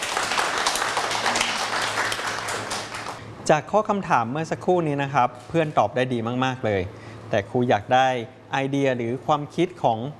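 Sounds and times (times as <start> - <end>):
classroom clapping: 0.0 - 3.2
speech: 3.5 - 10.1.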